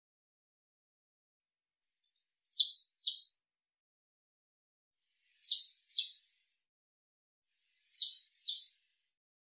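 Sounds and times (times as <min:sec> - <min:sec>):
Eurasian blue tit calling: 0:01.9 - 0:03.3, 0:05.5 - 0:06.2, 0:08.0 - 0:08.7.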